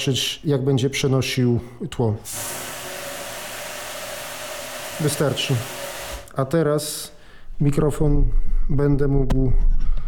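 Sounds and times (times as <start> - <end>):
speech: 0.0 - 2.6, 5.0 - 5.8, 6.4 - 9.9
running tap water: 2.3 - 6.3.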